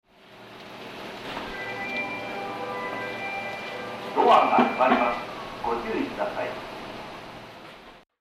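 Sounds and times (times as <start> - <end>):
melody: 1.4 - 6.3.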